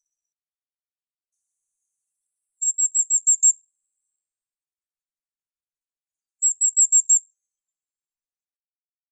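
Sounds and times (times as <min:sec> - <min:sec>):
firecrest Regulus ignicapillus: 0:02.6 - 0:03.6, 0:06.4 - 0:07.2.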